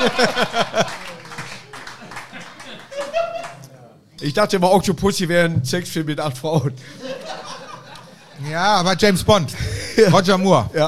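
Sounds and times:
speech: 0.0 - 0.6, 4.2 - 7.2, 8.4 - 10.8
laughter: 0.0 - 1.3, 2.0 - 3.6, 6.8 - 8.5
scattered hand clapping: 0.0 - 3.7.

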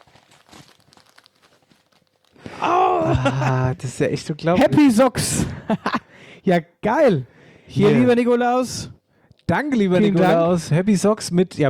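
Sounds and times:
gift package paper crinkling: 0.0 - 2.5
speech: 2.6 - 11.6
laughter: 2.9 - 3.9, 4.5 - 6.1.

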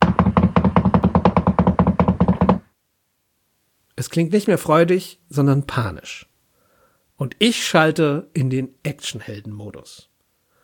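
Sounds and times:
rapid knocking on a locked door: 0.0 - 2.8
speech: 4.0 - 6.3, 7.2 - 10.1.

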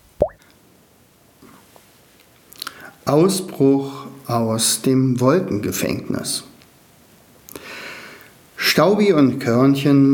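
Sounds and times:
water drop plopping: 0.2 - 0.4
speech: 3.1 - 6.5, 8.8 - 10.1.

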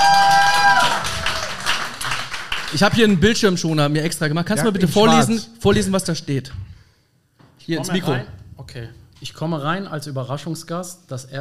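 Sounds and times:
audience applause greeting a volunteer on stage at a German-speaking live event: 0.0 - 3.3
speech: 2.7 - 6.7, 7.7 - 11.3.

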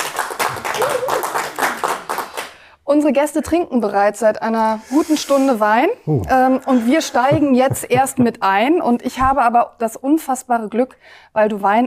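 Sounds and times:
crowd applauding: 0.0 - 2.5
speech: 2.9 - 11.8
laughter: 6.1 - 8.4.

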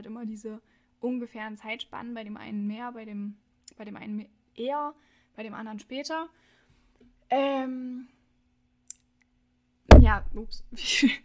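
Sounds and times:
speech: 0.0 - 6.6, 7.3 - 8.2, 10.0 - 11.2
thump of something hitting the microphone: 9.9 - 10.6.

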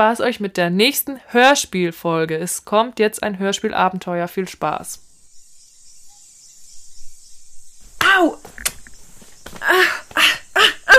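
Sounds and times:
speech: 0.0 - 5.1, 8.2 - 8.5, 9.6 - 10.7
high-pitched insects chirping in a rainforest: 3.5 - 10.9.

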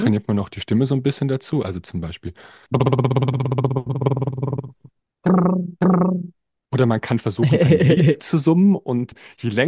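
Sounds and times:
speech: 0.0 - 4.2, 6.7 - 9.6
lip trill: 2.8 - 6.3
laughter: 7.4 - 8.2.

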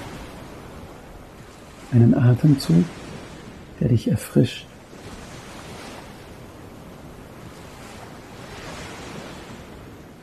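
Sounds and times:
waves gently rolling in on shore: 0.0 - 10.2
speech: 1.9 - 3.0, 3.8 - 4.7.

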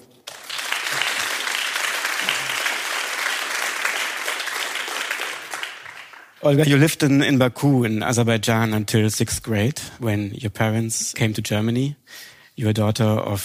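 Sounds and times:
audience applause: 0.2 - 6.4
speech: 6.4 - 13.4.

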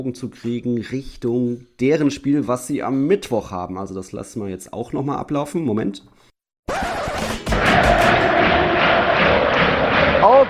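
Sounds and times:
speech: 0.0 - 6.3
large football crowd cheering in a stadium: 6.7 - 10.4.

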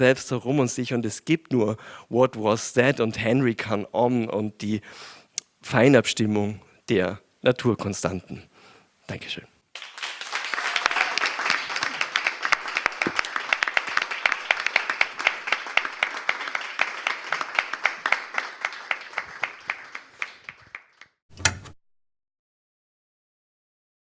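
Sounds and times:
speech: 0.0 - 8.5, 9.1 - 9.5
room full of people applauding: 9.7 - 21.2.

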